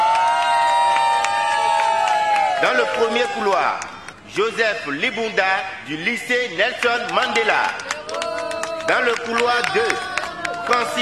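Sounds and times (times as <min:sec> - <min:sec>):
crowd cheering and applauding: 0:00.0 - 0:04.2, 0:06.8 - 0:11.0
speech: 0:02.6 - 0:07.9, 0:08.9 - 0:10.1, 0:10.7 - 0:11.0.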